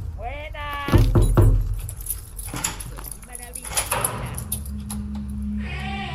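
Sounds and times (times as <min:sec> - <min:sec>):
door opening: 0:00.8 - 0:05.6.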